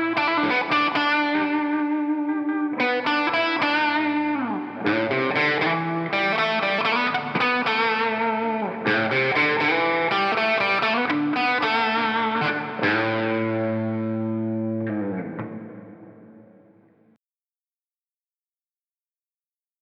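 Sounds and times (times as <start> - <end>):
A minor C G chords through a Mesa Triple Rectifier amplifier: 0.0 - 17.0.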